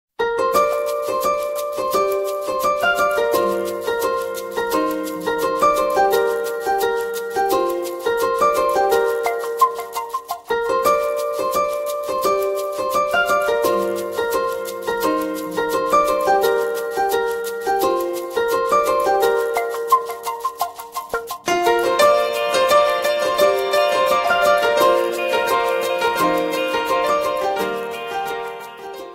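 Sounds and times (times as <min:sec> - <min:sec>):
instrumental mobile ringtone: 0:00.5 - 0:29.1.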